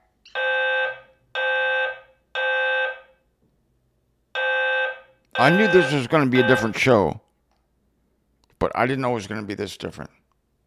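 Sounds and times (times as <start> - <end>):
fire alarm horn blasts from a false alarm: 0.3 - 3.2, 4.4 - 6.9
speech: 5.4 - 7.2, 8.6 - 10.2.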